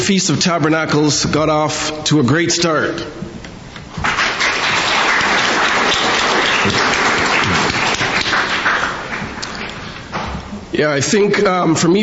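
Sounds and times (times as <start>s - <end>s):
speech: 0.0s - 3.4s, 10.8s - 12.0s
audience applause: 3.9s - 10.3s.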